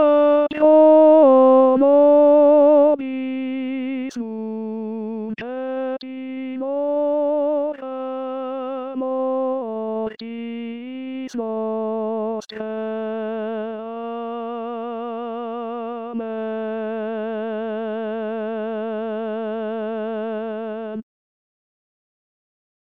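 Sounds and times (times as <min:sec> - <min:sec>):
tenor singing a hymn: 0:00.0 - 0:21.0.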